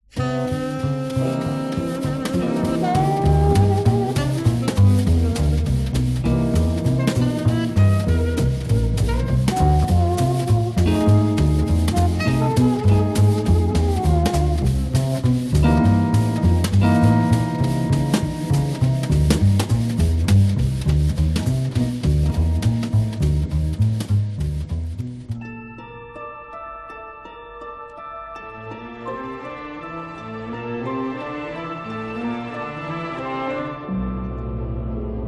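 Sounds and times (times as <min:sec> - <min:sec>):
jazz music: 0:00.1 - 0:26.2, 0:28.0 - 0:35.2.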